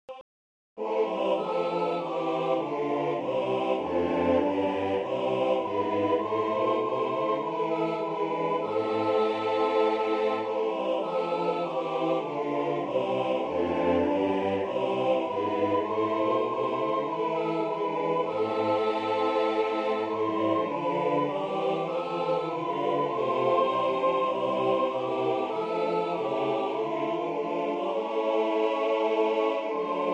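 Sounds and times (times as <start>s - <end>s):
bass voice singing a hymn: 0.8s - 30.1s.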